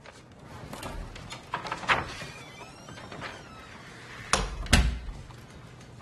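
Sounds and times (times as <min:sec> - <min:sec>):
door pushed shut with a double clunk: 0:00.6 - 0:05.4.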